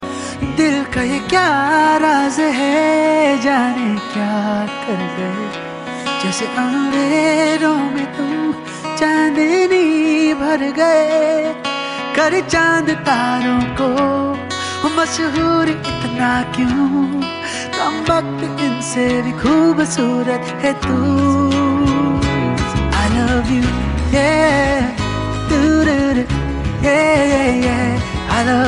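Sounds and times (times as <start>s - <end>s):
acoustic love song: 0.0s - 28.6s.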